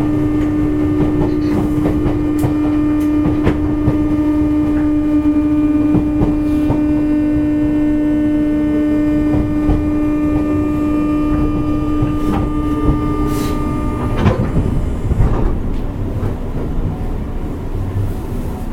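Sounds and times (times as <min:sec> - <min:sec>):
JR West 201 series local train rumbling on the Yamatoji line: 0:00.0 - 0:18.7.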